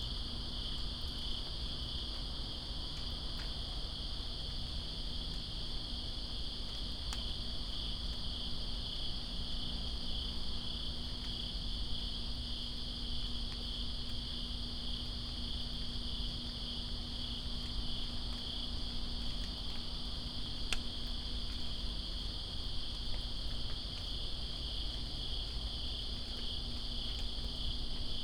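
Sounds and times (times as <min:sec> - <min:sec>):
crickets chorus: 0:00.0 - 0:28.2.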